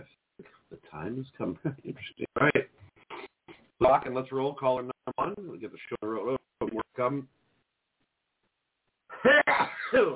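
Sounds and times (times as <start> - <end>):
speech: 1.0 - 2.8, 3.8 - 6.0, 7.0 - 7.4, 9.6 - 10.1
sneeze: 9.4 - 10.1.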